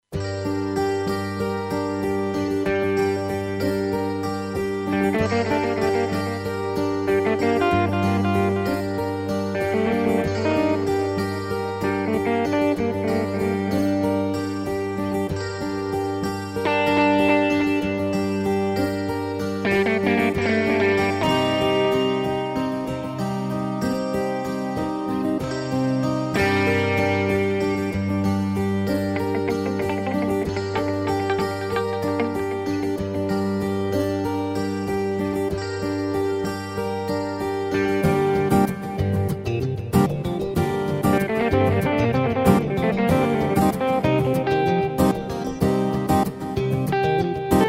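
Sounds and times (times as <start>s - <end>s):
guitars: 0.1s - 47.6s.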